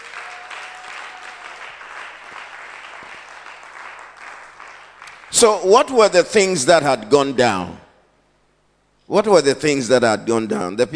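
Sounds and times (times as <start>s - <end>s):
audience clapping: 0.0s - 5.7s
speech: 5.3s - 7.8s, 9.1s - 10.9s.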